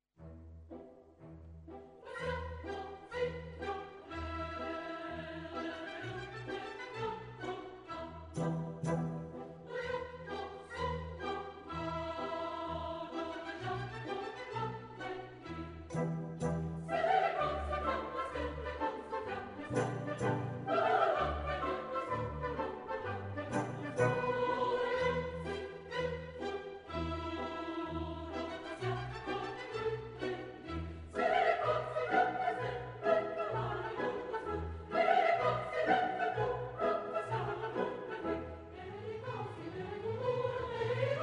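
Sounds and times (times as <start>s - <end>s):
opera chorus singing: 1.9s - 41.2s.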